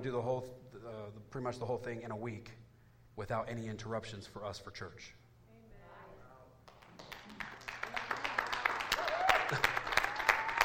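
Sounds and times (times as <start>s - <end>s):
speech: 0.0s - 5.2s
scattered applause from audience: 6.7s - 10.6s.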